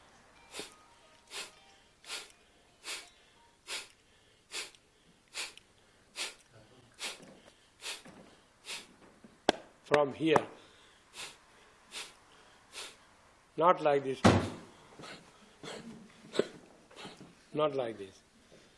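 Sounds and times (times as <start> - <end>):
Kapalbhati yoga breathing forceful exhalations: 0.5 - 9.0, 10.5 - 13.2, 14.5 - 17.5
speech: 10.0 - 10.6, 13.6 - 14.5, 17.6 - 18.2.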